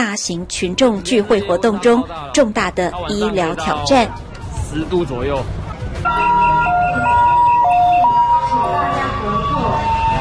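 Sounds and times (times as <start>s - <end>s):
speech: 0.2s - 6.5s
ambulance siren: 6.0s - 10.1s.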